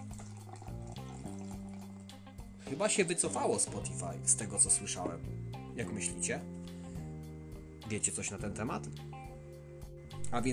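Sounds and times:
juice pouring into a glass: 0.0 - 2.4
speech: 2.7 - 6.6, 7.9 - 9.2, 10.3 - 10.5.

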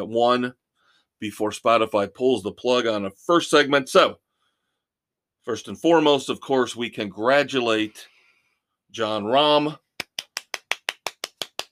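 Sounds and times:
speech: 0.0 - 0.6, 1.2 - 4.2, 5.4 - 8.1, 8.9 - 9.8
person golf clapping: 10.0 - 11.7.

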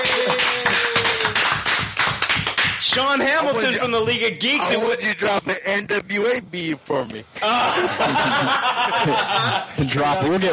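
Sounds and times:
audience applause: 0.0 - 3.1
speech: 2.9 - 10.5
laughter: 7.4 - 10.5.

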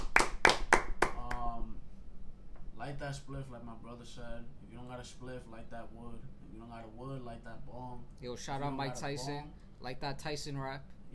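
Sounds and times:
person clapping hands: 0.0 - 1.5
faint lingering hum: 0.0 - 11.1
speech: 2.9 - 11.0.

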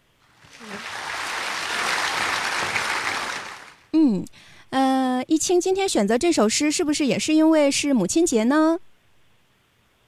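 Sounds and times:
applause: 0.2 - 3.9
speech: 4.0 - 8.9.

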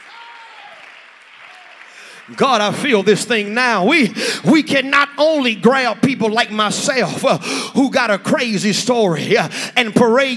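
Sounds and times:
audience applause: 0.0 - 3.5
speech: 2.3 - 10.3.

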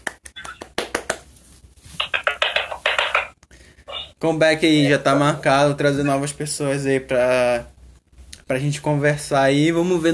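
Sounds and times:
hand claps: 0.0 - 1.3, 2.0 - 3.4
speech: 4.2 - 7.7, 8.5 - 10.1.

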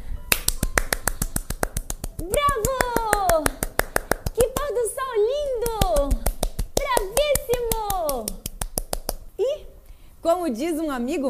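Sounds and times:
quick sharp hand claps: 0.2 - 4.8, 5.4 - 9.3
speech: 10.4 - 11.2.

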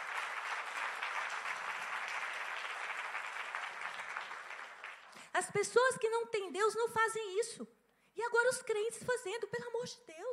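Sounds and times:
audience applause: 0.0 - 5.2
speech: 5.4 - 10.3.

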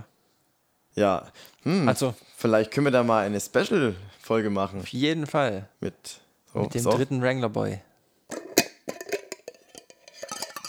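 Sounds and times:
speech: 1.0 - 7.9
glass jar being opened: 6.8 - 7.1, 8.3 - 10.6.

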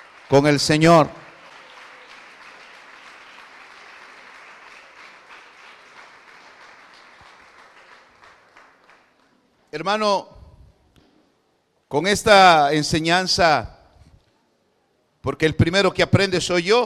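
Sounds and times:
audience clapping: 0.0 - 9.6
speech: 0.3 - 1.2, 9.8 - 10.3, 11.9 - 13.7, 15.2 - 16.8.

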